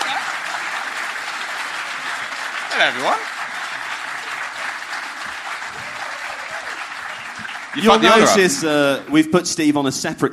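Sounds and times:
audience applause greeting a producer: 0:00.0 - 0:09.4
speech: 0:02.7 - 0:03.3, 0:07.7 - 0:10.3.

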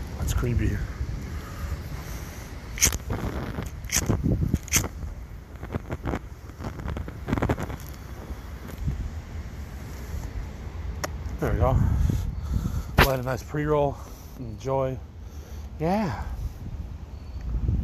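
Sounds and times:
wind buffeting an outdoor microphone: 0:00.0 - 0:09.3, 0:11.4 - 0:14.0, 0:16.2 - 0:17.8
speech: 0:00.2 - 0:01.0, 0:11.6 - 0:11.9, 0:13.1 - 0:15.1, 0:15.8 - 0:16.3.

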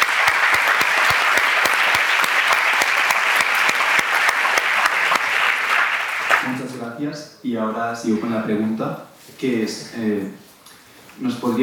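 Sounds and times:
applause: 0:00.0 - 0:06.9
speech: 0:07.0 - 0:10.4, 0:11.2 - 0:11.6.

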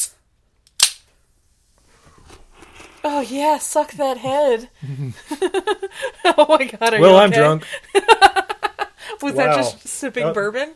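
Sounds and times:
beverage can top popping open: 0:00.7 - 0:01.1
speech: 0:03.0 - 0:08.2, 0:09.2 - 0:10.7
laughter: 0:04.8 - 0:09.7.

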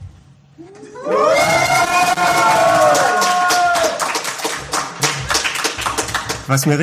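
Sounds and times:
whoops: 0:00.8 - 0:04.2
small group of people cheering yay: 0:01.0 - 0:04.6
scattered clapping: 0:01.6 - 0:06.7.

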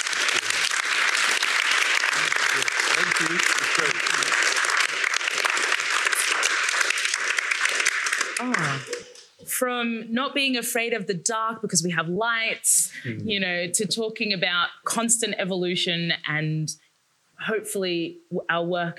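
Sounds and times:
audience applause for panel: 0:00.0 - 0:09.3
speech: 0:09.6 - 0:16.8, 0:17.4 - 0:18.9.

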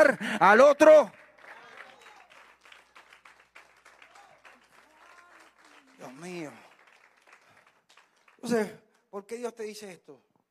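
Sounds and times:
speech: 0:00.0 - 0:01.2, 0:06.0 - 0:06.6, 0:08.4 - 0:10.3
audience applause: 0:01.0 - 0:08.7.

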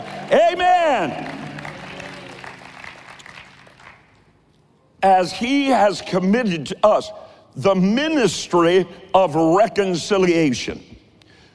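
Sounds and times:
audience clapping and cheering: 0:00.0 - 0:04.4
speech: 0:00.3 - 0:01.4, 0:05.0 - 0:10.9.

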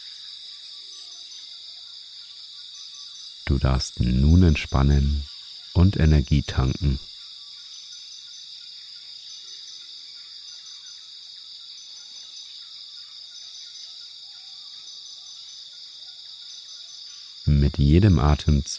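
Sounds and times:
rainforest insect and cricket chirring: 0:00.0 - 0:18.7
speech: 0:03.5 - 0:07.1, 0:17.5 - 0:18.7.

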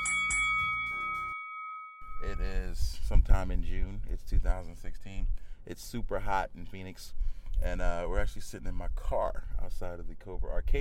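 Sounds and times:
bright bell ringing: 0:00.0 - 0:02.8
speech: 0:02.2 - 0:10.7.

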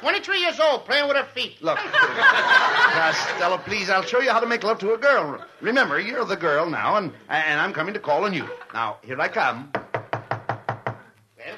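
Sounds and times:
speech: 0:00.0 - 0:09.8
laughter: 0:01.8 - 0:06.2, 0:08.2 - 0:09.0
knocking on a door: 0:09.7 - 0:11.1.

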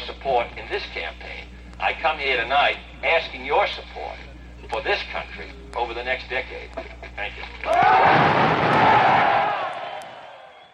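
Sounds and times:
speech: 0:00.2 - 0:09.3
large crowd cheering and applauding after speech: 0:07.7 - 0:10.7.

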